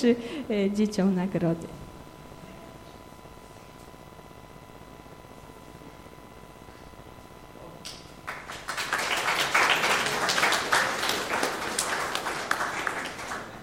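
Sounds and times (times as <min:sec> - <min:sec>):
speech: 0:00.0 - 0:01.8
audience applause: 0:08.2 - 0:13.6.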